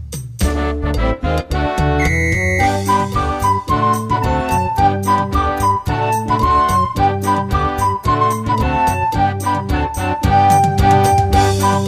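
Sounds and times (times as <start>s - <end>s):
recorder playing samba: 0.4s - 11.8s.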